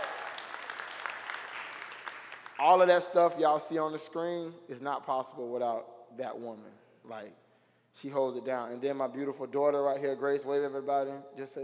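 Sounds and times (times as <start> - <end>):
church congregation applause: 0.0 - 3.0
speech: 2.6 - 7.4, 8.0 - 11.6.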